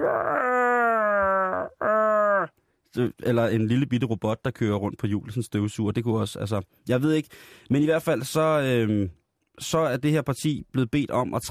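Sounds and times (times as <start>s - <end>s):
voice imitating a hairy creature's growling wail: 0.0s - 2.5s
speech: 2.9s - 11.4s.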